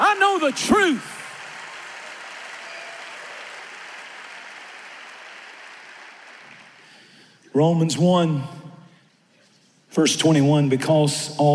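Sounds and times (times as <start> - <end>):
audience clapping: 0.0 - 7.4
speech: 0.5 - 1.2, 7.6 - 8.6, 9.9 - 11.5.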